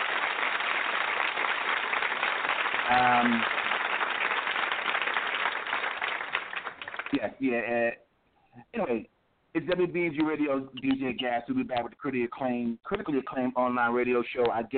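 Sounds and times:
audience applause: 0.0s - 7.3s
speech: 2.9s - 3.6s, 7.1s - 8.0s, 8.6s - 14.7s.

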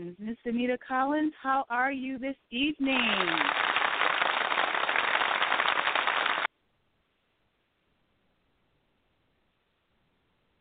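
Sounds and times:
speech: 0.0s - 3.7s
applause: 2.9s - 6.5s.

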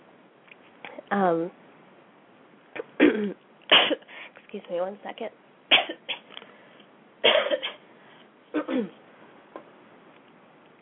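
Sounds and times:
speech: 1.1s - 1.6s, 3.2s - 3.4s, 4.5s - 5.4s, 8.8s - 9.0s
person with a cold coughing: 2.9s - 4.1s, 7.2s - 7.8s, 8.6s - 9.0s
breathing: 4.0s - 4.4s, 6.4s - 7.0s, 7.9s - 8.4s.

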